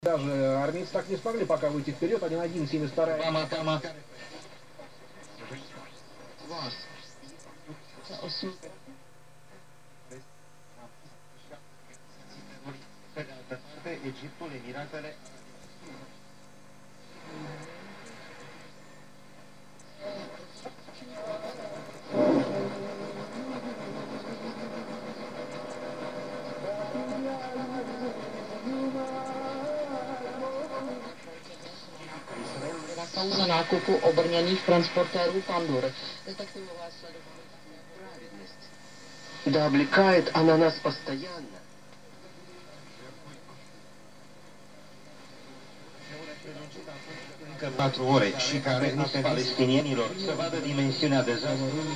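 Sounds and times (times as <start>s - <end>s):
medium wave radio tuning through: 0.0s - 51.9s.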